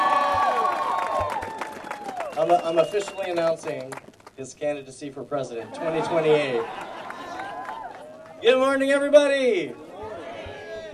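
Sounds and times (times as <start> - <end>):
crowd cheering: 0.0 - 4.0, 5.6 - 9.1, 9.7 - 10.9
crowd applause: 0.0 - 4.3, 5.7 - 8.6
speech: 2.4 - 6.9, 8.4 - 9.8.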